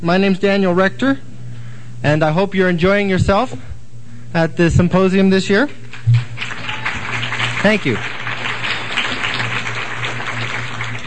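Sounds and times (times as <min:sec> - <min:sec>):
speech: 0:00.0 - 0:01.3, 0:02.0 - 0:03.7, 0:04.3 - 0:06.2, 0:07.6 - 0:08.2
faint low hum: 0:00.0 - 0:11.0
audience applause: 0:05.8 - 0:11.0.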